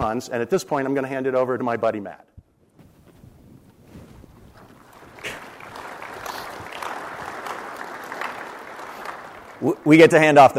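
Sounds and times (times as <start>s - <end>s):
speech: 0.0s - 2.3s, 9.6s - 10.5s
audience clapping: 4.6s - 10.5s.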